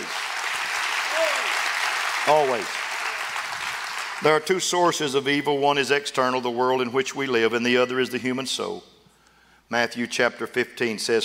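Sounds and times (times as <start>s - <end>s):
audience clapping hands: 0.0s - 4.6s
speech: 2.3s - 2.8s, 4.2s - 8.9s, 9.7s - 11.2s.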